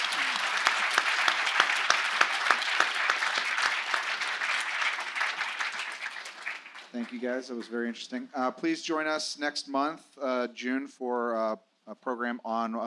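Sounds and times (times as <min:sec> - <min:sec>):
audience applause: 0:00.0 - 0:07.6
speech: 0:07.0 - 0:12.8.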